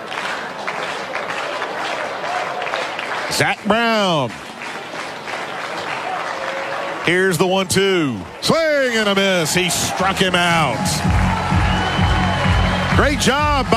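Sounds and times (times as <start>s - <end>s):
baseball stadium crowd applauding: 0.0s - 13.7s
speech: 3.3s - 4.5s, 7.1s - 11.2s, 13.0s - 13.7s.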